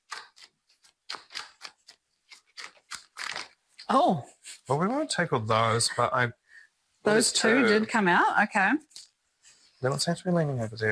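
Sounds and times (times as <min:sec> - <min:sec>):
cards being handled for ASMR, snapping and flicking: 0:00.0 - 0:03.6
speech: 0:03.9 - 0:06.4, 0:07.0 - 0:08.9, 0:09.8 - 0:10.8.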